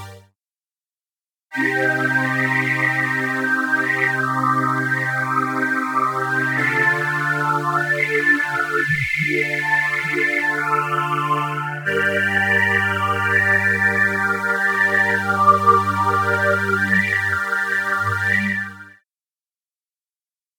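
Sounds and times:
VST filter effect: 0:01.6 - 0:18.9.

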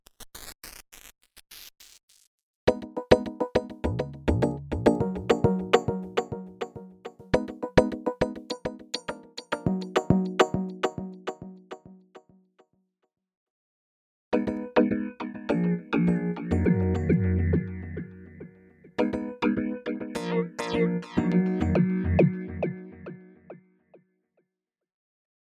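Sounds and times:
keyboard playing: 0:02.7 - 0:11.8, 0:14.4 - 0:23.0.

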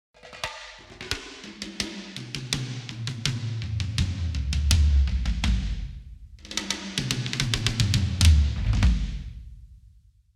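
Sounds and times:
tom drums: 0:00.2 - 0:10.0.

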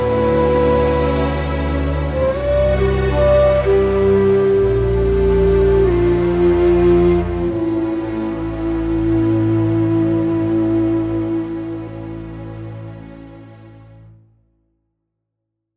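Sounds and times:
low whistle: 0:00.0 - 0:12.2.

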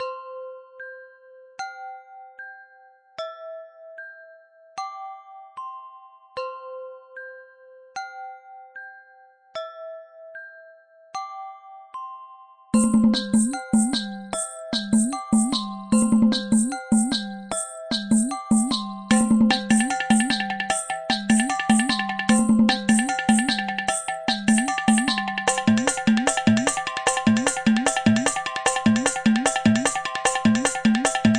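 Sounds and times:
bells ringing: 0:12.8 - 0:31.3.

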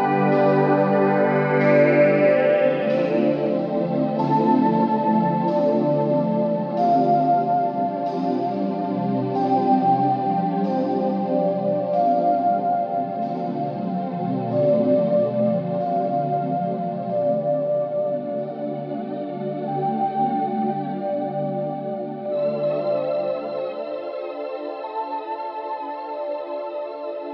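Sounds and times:
VHS-style dreamwave music: 0:00.0 - 0:27.3.

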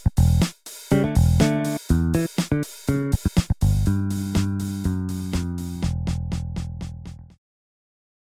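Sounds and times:
fingered bass: 0:00.0 - 0:07.4.

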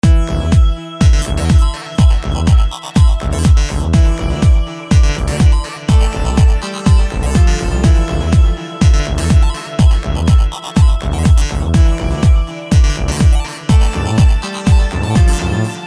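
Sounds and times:
deep house music: 0:00.0 - 0:15.8.

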